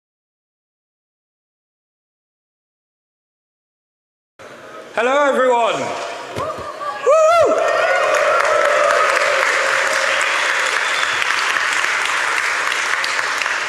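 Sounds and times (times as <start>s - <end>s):
speech: 5.0s - 6.6s
audience applause and cheering: 7.0s - 13.6s.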